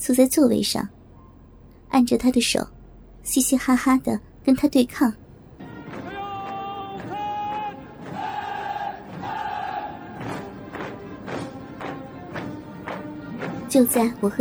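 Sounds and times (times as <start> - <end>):
speech: 0.0 - 1.0, 1.9 - 5.2, 13.8 - 14.3
people chanting slogans: 5.6 - 11.5
marching footsteps: 5.6 - 14.3.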